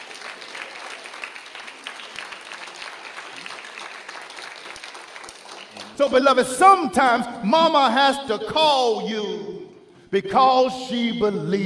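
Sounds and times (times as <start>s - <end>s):
audience clapping: 0.0s - 6.5s
speech: 6.0s - 9.4s, 10.1s - 11.6s.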